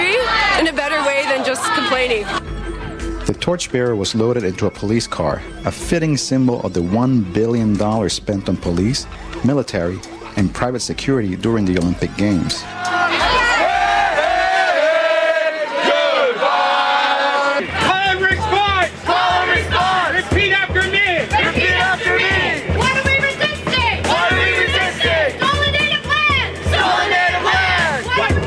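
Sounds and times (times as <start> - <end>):
protest crowd chanting: 0.0 - 2.4, 12.6 - 28.4
speech: 3.5 - 12.9.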